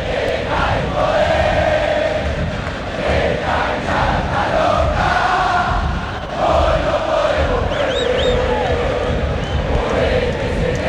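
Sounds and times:
huge football stadium crowd chanting in unison: 0.0 - 10.8
shrill whistles: 7.7 - 8.7, 9.4 - 9.7.

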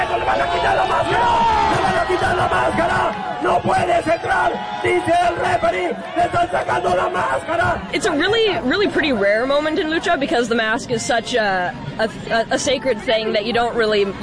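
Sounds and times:
wrestling crowd roaring and shouting reacting to mask removal: 0.0 - 14.2
speech: 0.3 - 14.2.

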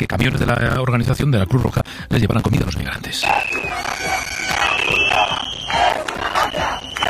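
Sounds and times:
speech: 0.1 - 4.2
angry crowd of protesters shouting accusations: 3.2 - 7.0
steady high whistle-like tone: 3.2 - 7.0.

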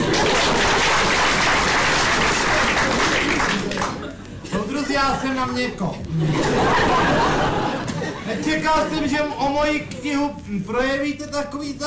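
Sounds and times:
audience applause: 0.0 - 4.1
laughter: 0.0 - 9.4
speech: 5.4 - 7.0, 8.3 - 11.8.

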